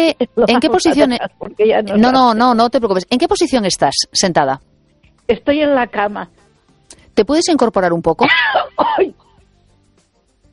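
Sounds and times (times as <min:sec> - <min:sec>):
speech: 0:00.0 - 0:04.7, 0:05.3 - 0:06.4, 0:07.2 - 0:09.2
cough and throat clearing: 0:08.2 - 0:09.4.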